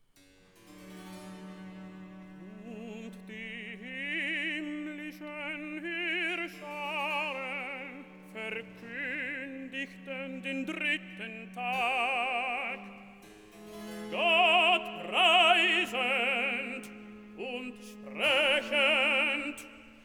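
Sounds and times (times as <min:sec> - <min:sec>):
sung recitative: 0:01.6 - 0:20.0.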